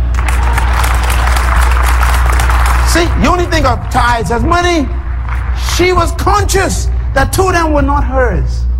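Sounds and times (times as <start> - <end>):
audience clapping: 0.0 - 7.0
speech: 3.0 - 5.0, 5.8 - 8.7.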